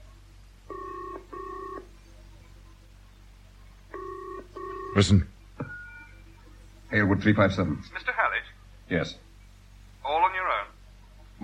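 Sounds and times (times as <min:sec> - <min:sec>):
low hum: 0:00.0 - 0:11.4
telephone ringing in a double-ring pattern with an incoming call: 0:00.7 - 0:01.9, 0:03.9 - 0:05.1
speech: 0:05.0 - 0:05.3, 0:06.9 - 0:08.2, 0:08.9 - 0:09.2.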